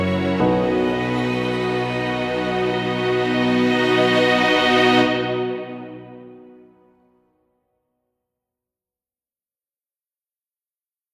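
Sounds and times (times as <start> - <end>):
orchestra: 0.0 - 6.8.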